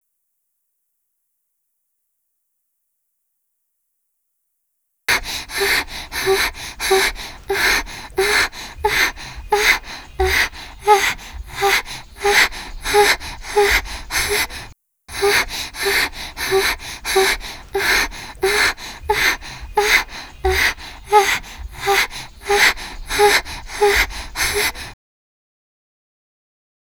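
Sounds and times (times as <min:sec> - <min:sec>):
person sighing: 0:05.1 - 0:24.9.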